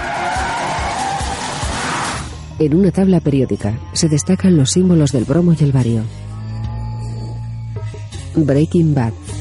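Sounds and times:
car tires squealing and skidding while turning left: 0:00.0 - 0:02.3
speech: 0:02.6 - 0:06.3, 0:08.4 - 0:09.3.

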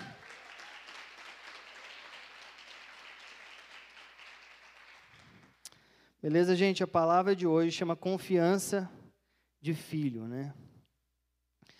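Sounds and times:
audience applause: 0:00.0 - 0:05.6
speech: 0:06.2 - 0:09.0, 0:09.6 - 0:10.7.

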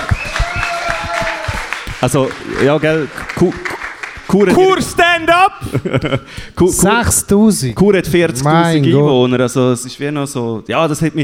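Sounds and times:
applause: 0:00.0 - 0:04.8
speech: 0:02.0 - 0:03.7, 0:04.3 - 0:11.2
laughter: 0:04.4 - 0:06.4.

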